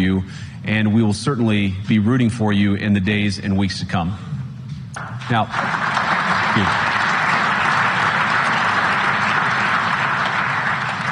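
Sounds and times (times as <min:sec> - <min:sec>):
speech: 0:00.0 - 0:04.3, 0:05.3 - 0:05.8, 0:06.6 - 0:06.9
large crowd applause: 0:05.2 - 0:11.1.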